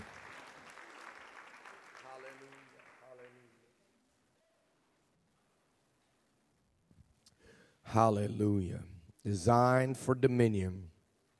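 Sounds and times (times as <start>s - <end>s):
audience clapping hands: 0.0s - 3.7s
speech: 7.9s - 10.9s.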